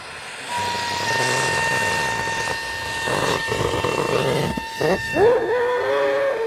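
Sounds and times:
helium hissing from a gas cylinder filling a weather balloon: 0.0 - 5.8
brief wavering squeaks: 0.5 - 5.5.

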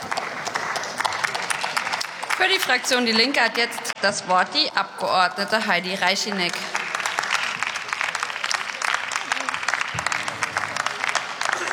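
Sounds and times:
applause in a German parliament: 0.0 - 4.0, 4.7 - 11.7
laughter: 0.0 - 4.0, 4.7 - 11.7
speech: 2.4 - 6.8.

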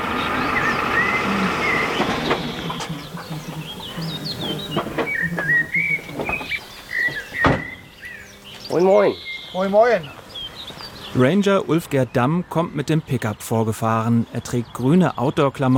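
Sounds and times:
geese calling while flying overhead: 0.0 - 9.8
speech: 8.8 - 10.2, 11.2 - 15.7.

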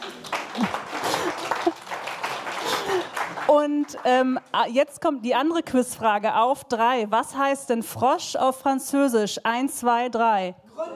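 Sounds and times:
crowd applause: 0.0 - 4.2
speech: 3.5 - 10.9.

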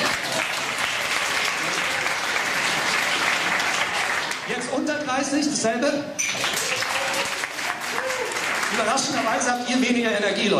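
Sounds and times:
audience applause: 0.0 - 4.7, 6.3 - 9.6
speech: 5.1 - 7.3, 8.7 - 10.5.

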